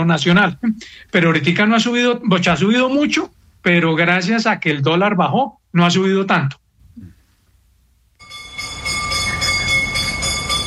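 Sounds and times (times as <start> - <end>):
speech: 0.0 - 7.1
bright bell clanging: 8.2 - 10.6.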